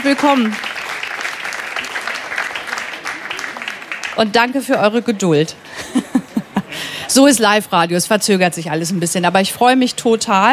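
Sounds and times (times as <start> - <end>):
speech: 0.0 - 0.7, 4.2 - 5.6, 7.1 - 10.5
studio audience applause: 0.0 - 5.2
laughter: 5.5 - 7.3.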